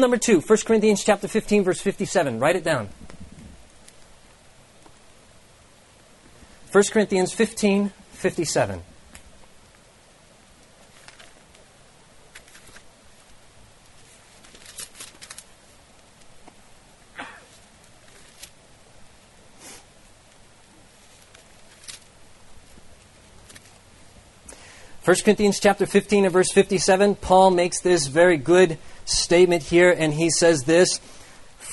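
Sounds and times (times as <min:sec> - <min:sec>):
speech: 0:00.0 - 0:03.1, 0:06.7 - 0:08.9, 0:25.1 - 0:31.7
hiss: 0:00.0 - 0:31.7
book pages turning among an audience: 0:10.8 - 0:11.6, 0:12.3 - 0:15.5, 0:17.9 - 0:18.6, 0:20.9 - 0:23.8.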